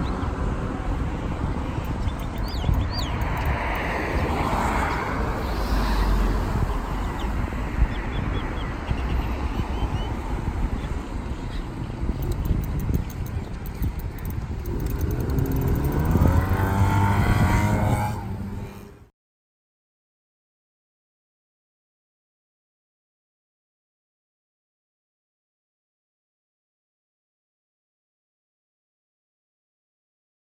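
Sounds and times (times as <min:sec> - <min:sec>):
spatial street sounds: 0:00.0 - 0:19.1.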